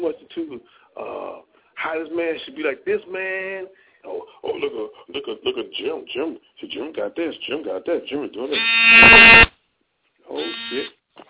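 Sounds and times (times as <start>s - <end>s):
speech: 2.2s - 3.8s, 4.6s - 9.5s, 10.7s - 11.0s
harsh electronic door buzzer: 8.6s - 9.5s, 10.4s - 10.9s.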